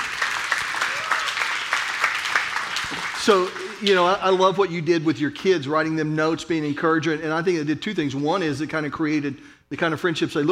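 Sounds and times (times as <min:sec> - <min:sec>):
audience applauding: 0:00.0 - 0:04.2
speech: 0:03.2 - 0:10.5.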